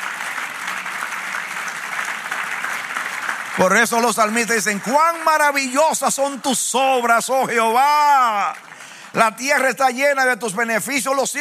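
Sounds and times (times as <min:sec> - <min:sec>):
audience applause: 0:00.0 - 0:11.1
speech: 0:03.6 - 0:11.3.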